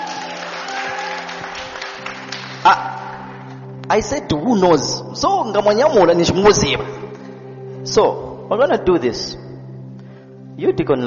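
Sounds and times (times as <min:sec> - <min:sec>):
audience clapping: 0:00.0 - 0:03.6
speech: 0:02.6 - 0:02.8, 0:03.9 - 0:07.0, 0:07.8 - 0:09.4, 0:10.6 - 0:11.0.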